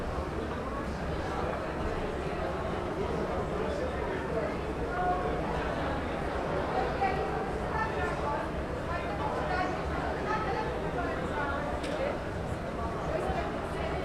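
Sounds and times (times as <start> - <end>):
crowd murmur: 0.0 - 14.0.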